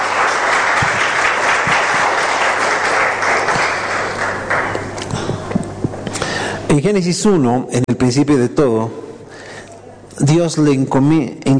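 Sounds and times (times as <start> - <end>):
audience applause: 0.0 - 5.4
speech: 6.7 - 9.1, 10.2 - 11.5.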